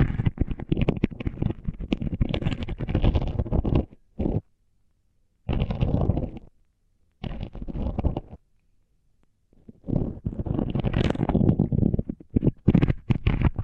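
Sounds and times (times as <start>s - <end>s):
tingles with mics under tape: 0.0s - 4.5s, 5.5s - 6.5s, 7.2s - 8.4s, 9.5s - 13.6s.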